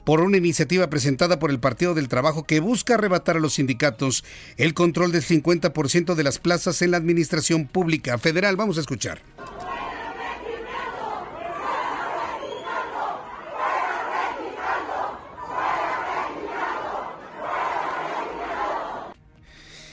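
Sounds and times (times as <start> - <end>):
speech: 0.0 - 9.6
protesting workers shouting in legislative chamber: 9.4 - 19.2.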